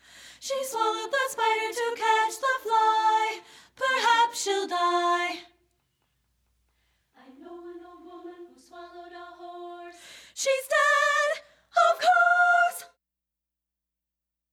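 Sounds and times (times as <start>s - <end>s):
soprano singing: 0.4s - 5.6s, 7.2s - 13.0s.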